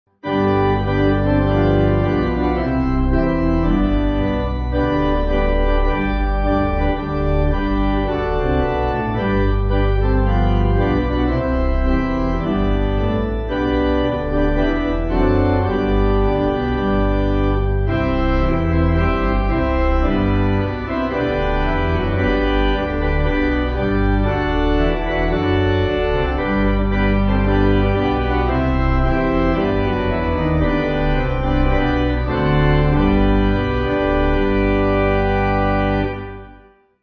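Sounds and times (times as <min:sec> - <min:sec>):
pipe organ: 0:00.1 - 0:37.0.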